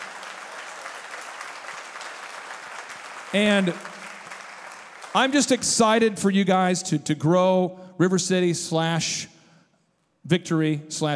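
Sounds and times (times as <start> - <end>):
audience applause: 0.0 - 6.1
speech: 3.3 - 3.9, 5.2 - 9.4, 10.2 - 11.1.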